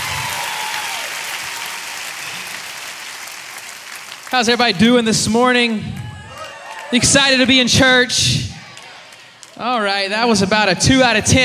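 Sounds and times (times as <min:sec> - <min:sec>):
audience applause: 0:00.0 - 0:08.0, 0:08.6 - 0:09.6
speech: 0:04.3 - 0:06.0, 0:06.9 - 0:08.5, 0:09.6 - 0:11.4.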